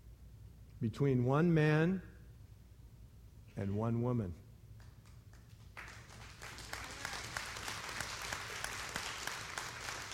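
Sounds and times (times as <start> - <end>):
speech: 0.8 - 2.1, 3.6 - 4.4
crowd clapping: 4.8 - 10.1.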